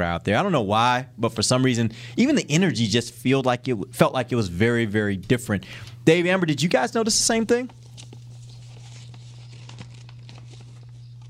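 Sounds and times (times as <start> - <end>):
speech: 0.0 - 7.8
constant low electrical hum: 0.0 - 11.2
papers rustling and crinkling: 7.0 - 11.2.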